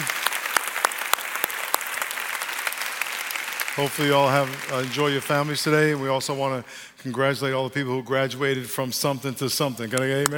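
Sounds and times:
audience applause at a Memorial Day tribute gathering: 0.0s - 6.6s
speech: 3.8s - 10.3s.

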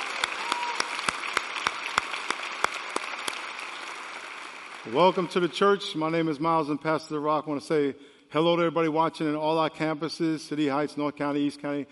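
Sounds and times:
church congregation applauding: 0.0s - 6.4s
speech: 4.8s - 11.9s.

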